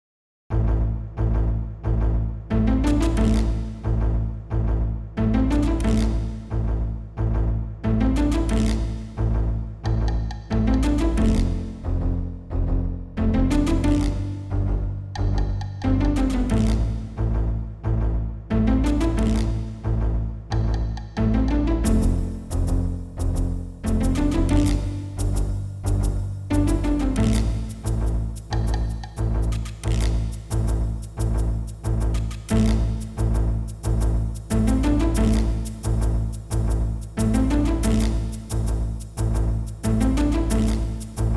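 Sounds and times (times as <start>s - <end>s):
suspense music: 0.5s - 41.3s.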